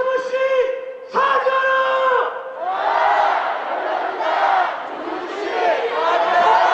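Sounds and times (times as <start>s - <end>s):
shouted phrases: 0.0s - 6.7s
large crowd chanting at a street protest: 2.6s - 6.7s.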